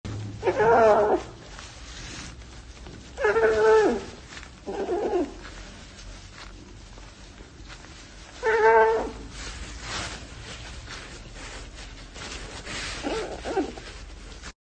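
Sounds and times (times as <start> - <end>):
cat with corn cob: 0.4 - 1.3, 3.2 - 5.4, 8.4 - 9.3, 13.0 - 14.0.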